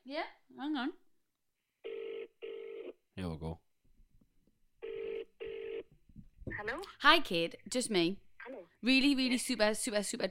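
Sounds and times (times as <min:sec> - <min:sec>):
speech: 0:00.1 - 0:01.0, 0:06.8 - 0:08.2, 0:08.8 - 0:10.2
telephone ringing out on an outgoing call: 0:01.8 - 0:02.9, 0:04.8 - 0:05.9.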